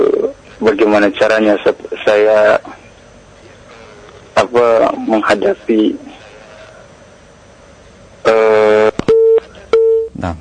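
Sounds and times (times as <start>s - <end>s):
speech: 0.0s - 2.7s, 4.4s - 6.1s
phone busy signal after a listener's call drops: 8.3s - 10.2s.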